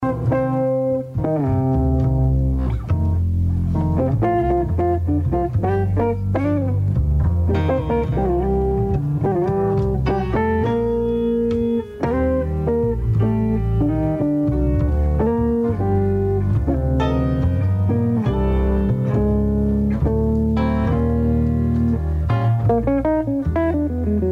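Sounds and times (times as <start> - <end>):
jazz music: 0.0 - 24.3.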